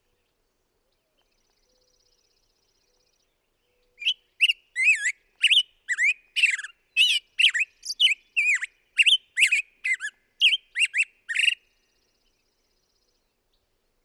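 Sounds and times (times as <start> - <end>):
black-headed grosbeak singing: 4.0 - 11.6.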